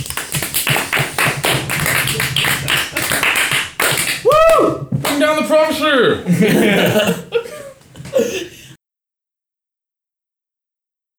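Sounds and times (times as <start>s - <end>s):
applause: 0.0s - 6.0s
laughter: 1.1s - 8.8s
speech: 5.6s - 7.3s.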